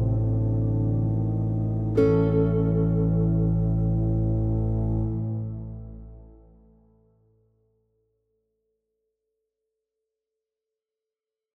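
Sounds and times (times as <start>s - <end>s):
classical guitar: 0.0s - 6.7s.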